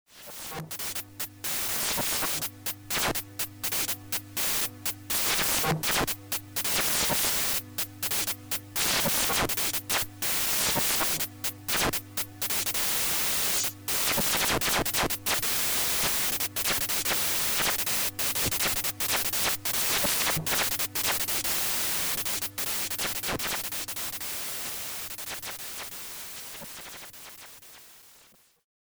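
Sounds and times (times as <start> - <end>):
static: 0.3 - 28.4.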